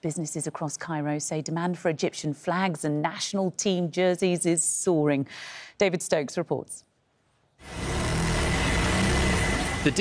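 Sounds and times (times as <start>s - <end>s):
speech: 0.0s - 6.9s
sewing machines in a Cairo workshop making Egyptian national flags: 7.6s - 9.9s.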